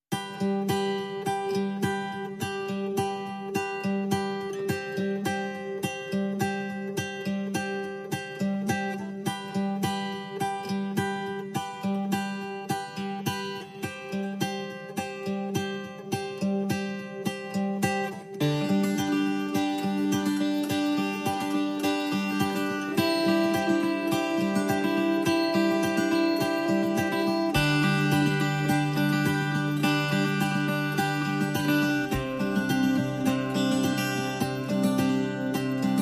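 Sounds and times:
guitar: 0.0 - 36.0
percussion: 0.1 - 36.0.

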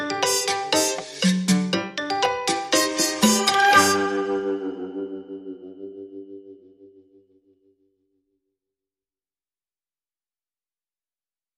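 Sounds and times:
music without drums or bass: 0.0 - 8.1.

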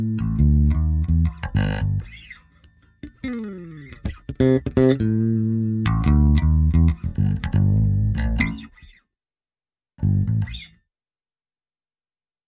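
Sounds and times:
bass: 0.0 - 9.0, 10.0 - 10.8.

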